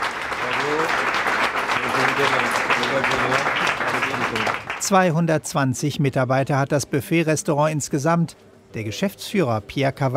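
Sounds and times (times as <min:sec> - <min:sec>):
restaurant staff applauding a newcomer: 0:00.0 - 0:05.2
speech: 0:02.2 - 0:10.1.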